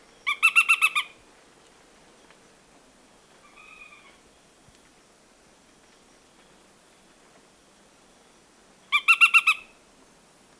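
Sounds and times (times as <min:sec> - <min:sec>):
Nariño tapaculo calling: 0:00.0 - 0:01.2, 0:03.4 - 0:04.2, 0:08.9 - 0:09.8.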